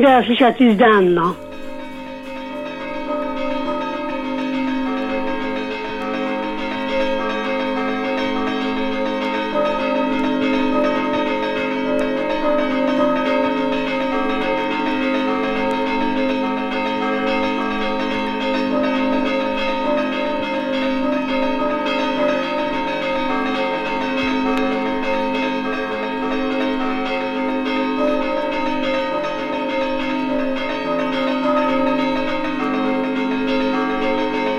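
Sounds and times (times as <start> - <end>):
speech: 0.0 - 1.5
church bells ringing: 0.0 - 34.5.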